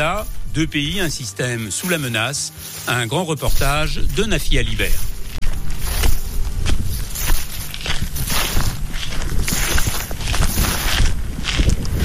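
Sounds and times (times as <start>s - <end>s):
speech: 0.0s - 5.1s
footsteps in dry fallen leaves by a lake: 0.0s - 12.0s.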